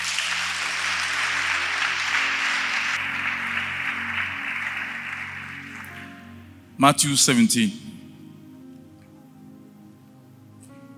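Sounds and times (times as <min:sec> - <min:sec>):
audience applause: 0:00.0 - 0:06.4
speech: 0:06.8 - 0:07.9.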